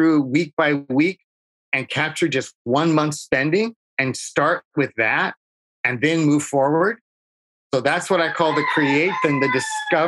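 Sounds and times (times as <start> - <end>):
speech: 0.0 - 7.0, 7.7 - 10.0
rooster crowing, a jungle fowl in Hawaii: 8.0 - 10.0.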